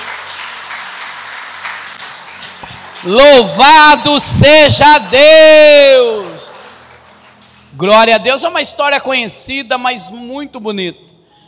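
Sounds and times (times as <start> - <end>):
audience applause: 0.0 - 7.7
speech: 3.0 - 6.3, 7.8 - 11.1.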